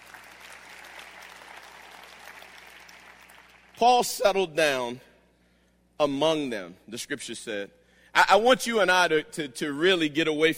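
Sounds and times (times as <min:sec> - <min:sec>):
audience hand clapping: 0:00.0 - 0:03.8
speech: 0:03.8 - 0:05.1, 0:06.0 - 0:10.5.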